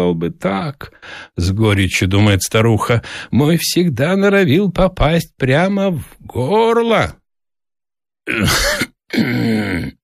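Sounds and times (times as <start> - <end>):
speech: 0.0 - 7.2, 8.3 - 10.0
old man groaning and grunting as he rubs his eyes: 8.3 - 10.0.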